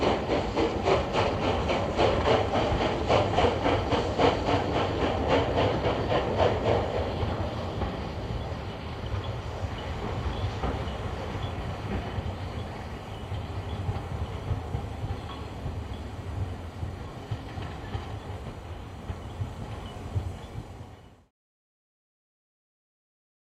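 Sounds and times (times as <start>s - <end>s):
train steam release: 0.0s - 21.3s.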